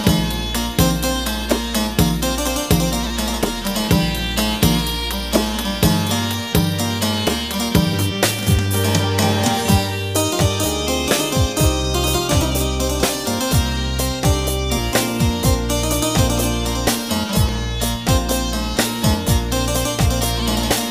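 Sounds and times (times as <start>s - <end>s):
Turkish turku folk music in four-four time: 0.0s - 20.8s.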